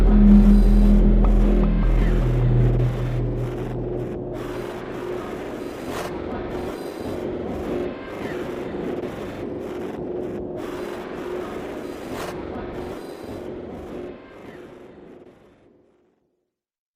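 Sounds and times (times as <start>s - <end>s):
ambient music: 0.0s - 5.7s.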